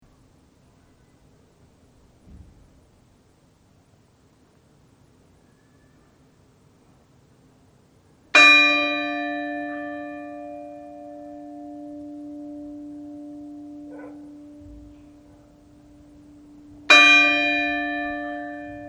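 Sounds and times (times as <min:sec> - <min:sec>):
funeral church bells tolling at Stykkisholmur church: 0:08.4 - 0:18.8.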